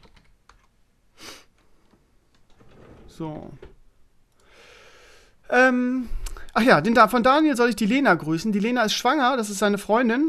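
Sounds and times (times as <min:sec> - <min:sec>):
typing a short message on a computer keyboard: 0:00.0 - 0:00.7
speech: 0:03.2 - 0:03.7, 0:05.6 - 0:10.2.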